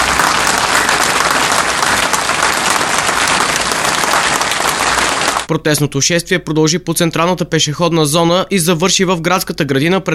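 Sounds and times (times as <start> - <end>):
crowd applauding: 0.0 - 5.5
speech: 5.5 - 10.1.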